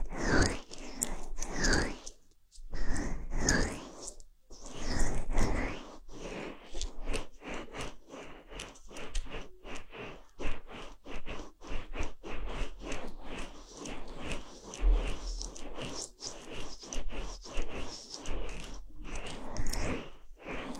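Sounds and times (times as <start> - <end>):
ear cleaning with a fluffy bonten ear pick: 0.0 - 20.7
faint low thumps: 14.8 - 15.4.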